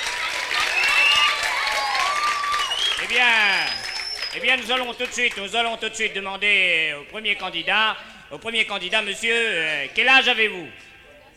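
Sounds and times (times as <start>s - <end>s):
audience applause: 0.0s - 5.6s
speech: 3.1s - 10.8s.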